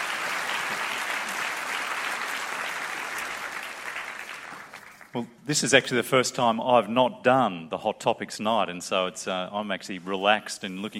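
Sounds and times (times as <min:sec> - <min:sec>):
audience applause welcoming two speakers on stage at a Hot Topics evening: 0:00.0 - 0:05.2
speech: 0:05.2 - 0:10.9.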